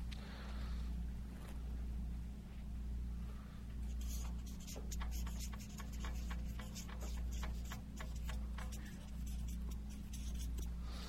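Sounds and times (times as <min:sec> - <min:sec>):
steady low hum: 0:00.0 - 0:11.0
pen scratching on paper while writing by hand: 0:03.9 - 0:10.7.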